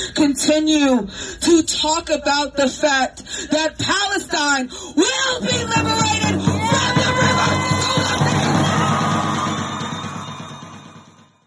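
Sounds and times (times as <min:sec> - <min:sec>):
speech: 0:00.3 - 0:07.5
rally crowd cheering and shouting: 0:05.4 - 0:11.4.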